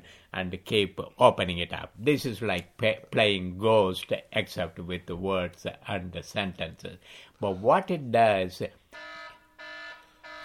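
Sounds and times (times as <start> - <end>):
speech: 0.3 - 9.1
fire alarm with buzzy electronic tone: 8.9 - 10.4.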